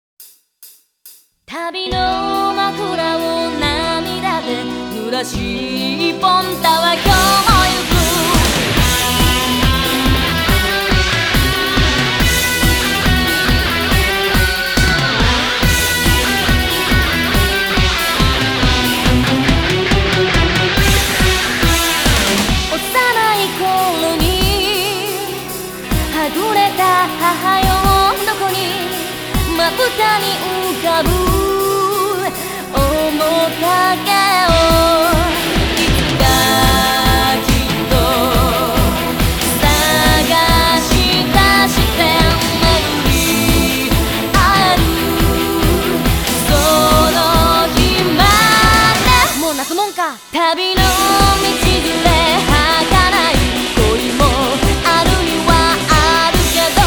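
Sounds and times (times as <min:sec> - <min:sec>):
backing track without bass: 0:01.7 - 0:56.8.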